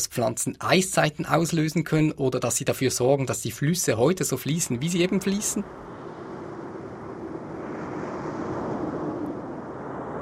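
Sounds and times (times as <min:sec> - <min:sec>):
speech: 0:00.0 - 0:06.0
wind: 0:00.0 - 0:10.2
ocean waves: 0:04.2 - 0:10.2.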